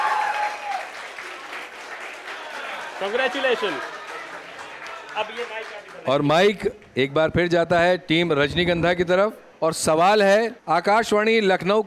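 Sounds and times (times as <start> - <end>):
audience applause at a quiz show: 0.0 - 6.6
speech: 3.0 - 4.0, 5.2 - 11.8.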